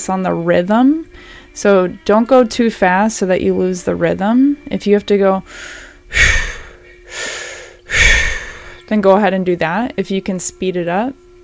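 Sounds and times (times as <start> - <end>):
speech: 0.0 - 6.5, 8.9 - 11.2
breath of fire breathing exercise: 5.5 - 8.9.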